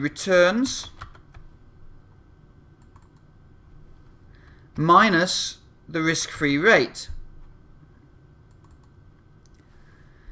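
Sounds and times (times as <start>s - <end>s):
speech: 0.0s - 1.0s, 4.8s - 7.2s
typing a formula into an Excel spreadsheet on a computer keyboard: 0.8s - 1.4s, 2.8s - 3.2s, 8.5s - 9.0s.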